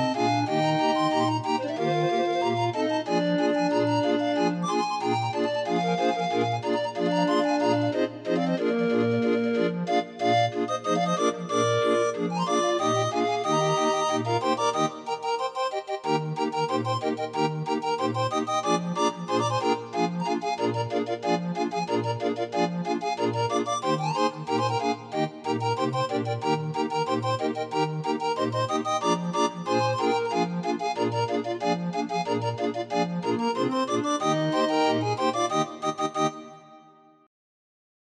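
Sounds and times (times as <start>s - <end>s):
31-note grind organ playing: 0.0s - 36.8s.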